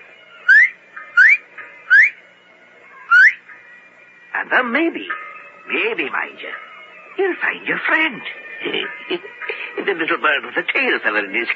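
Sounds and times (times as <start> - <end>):
person whistling: 0.5 - 2.2, 3.1 - 3.4
speech: 4.4 - 11.5.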